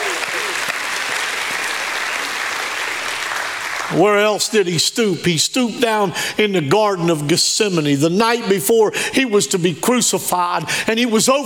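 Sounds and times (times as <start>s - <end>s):
audience clapping hands: 0.0s - 4.3s
speech: 3.9s - 11.4s.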